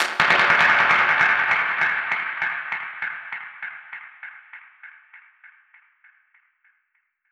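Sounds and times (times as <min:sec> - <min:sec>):
dub percussion hit: 0:00.0 - 0:02.7.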